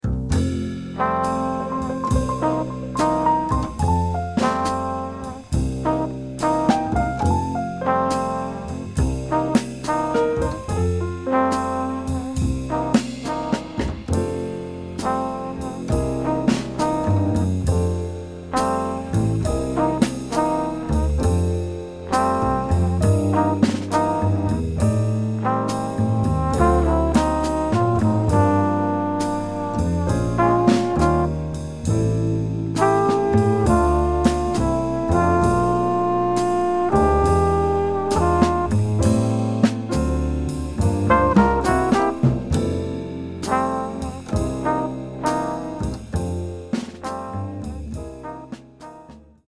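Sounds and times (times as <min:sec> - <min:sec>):
backing track without melody: 0:00.4 - 0:47.6.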